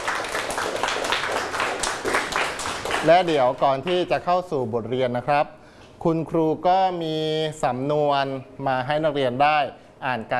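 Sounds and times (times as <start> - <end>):
hand clapping: 0.0 - 4.1
speech: 3.0 - 10.3.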